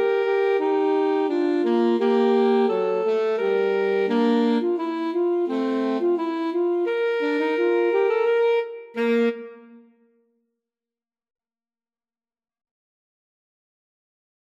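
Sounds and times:
alto saxophone duet: 0:00.0 - 0:10.1.

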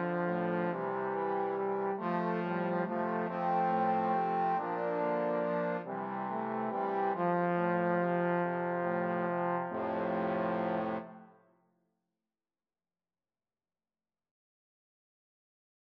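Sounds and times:
trombone quartet: 0:00.0 - 0:11.3.

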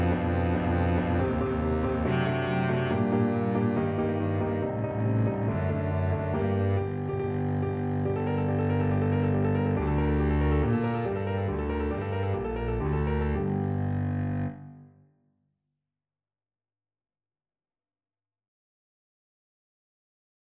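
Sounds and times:
double bass playing a symphony part: 0:00.0 - 0:14.6.

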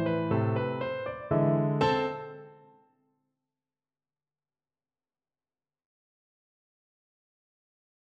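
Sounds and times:
piano duet: 0:00.0 - 0:02.7.

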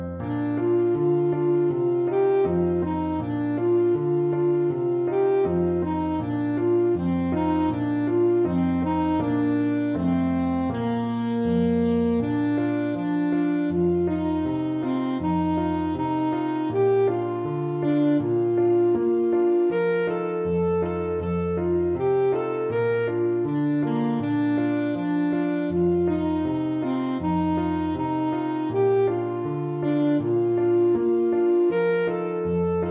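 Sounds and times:
alto saxophone: 0:00.2 - 0:32.8.

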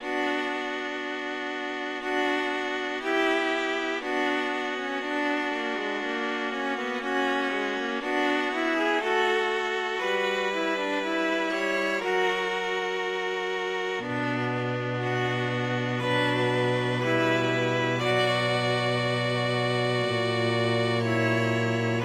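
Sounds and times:
string quartet: 0:00.0 - 0:22.0.

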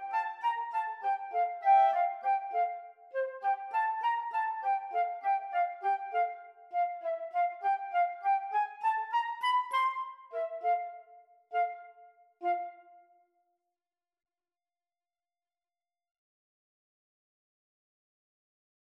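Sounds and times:
flute and clarinet duet: 0:00.0 - 0:13.0.

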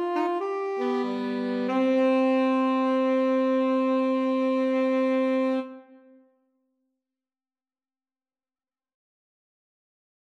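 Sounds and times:
two alto saxophones and tenor saxophone playing a bourree: 0:00.0 - 0:06.2.

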